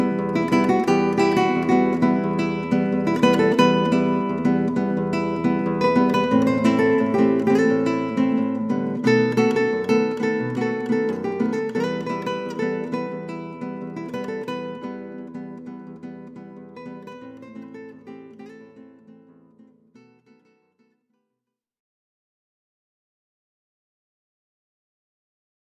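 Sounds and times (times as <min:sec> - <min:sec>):
Brazilian guitarist playing guitar: 0:00.0 - 0:20.4.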